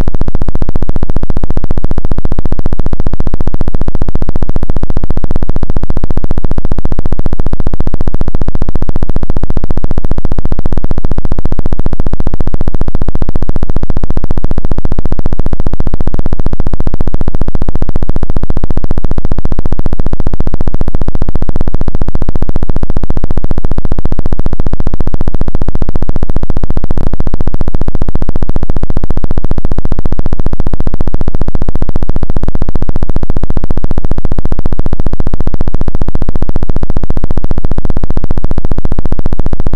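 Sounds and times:
brain wave tones: 0.0 - 39.7.

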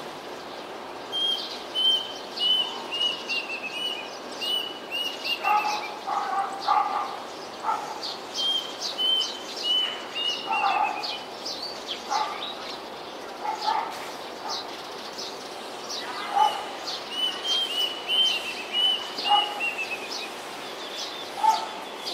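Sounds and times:
other birds chirping and whistling: 0.2 - 22.1
blue-winged pitta whistled calls: 1.1 - 6.0, 8.4 - 11.2, 15.9 - 22.1.

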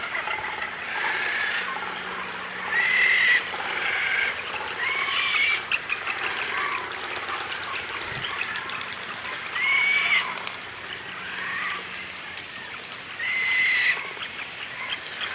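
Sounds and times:
frigatebird calling: 0.0 - 15.3.

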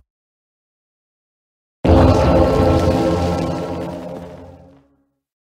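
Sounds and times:
Minecraft Evoker sound: 1.8 - 4.9.

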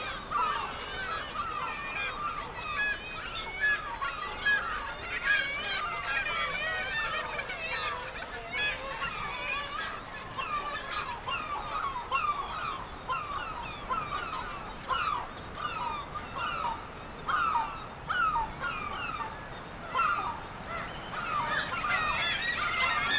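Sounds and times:
black-legged kittiwakes nasal wailing calls: 0.0 - 23.1.

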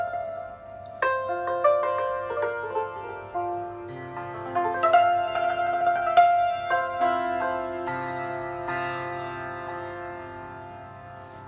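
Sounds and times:
santur playing: 0.0 - 11.4.

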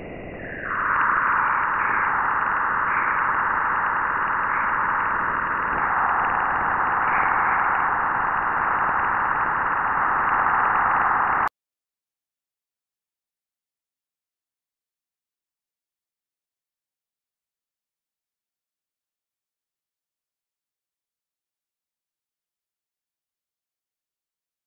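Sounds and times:
Jupiter radio waves: 0.0 - 11.5.

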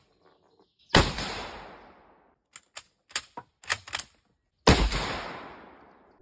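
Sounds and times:
Lebel rifle firing: 1.0 - 1.9, 4.7 - 5.8.

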